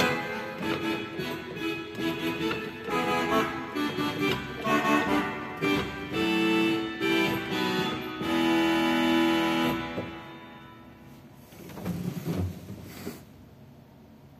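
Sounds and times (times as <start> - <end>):
dulcian regal organ stop: 0.0 - 11.3.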